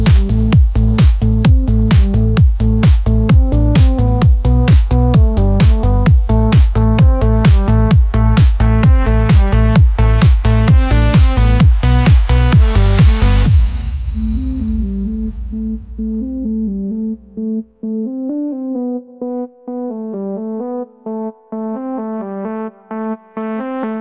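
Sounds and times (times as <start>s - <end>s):
electric surge bass: 0.0s - 18.8s.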